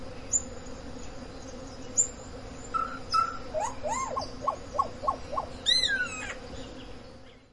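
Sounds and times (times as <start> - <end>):
Cacicus solitarius calling: 2.7 - 6.4.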